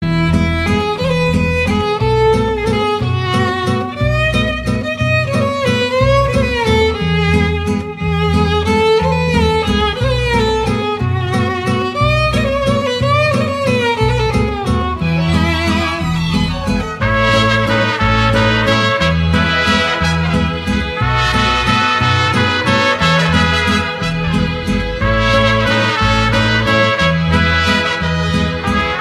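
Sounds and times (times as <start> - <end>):
mariachi band playing: 0.0 - 29.0.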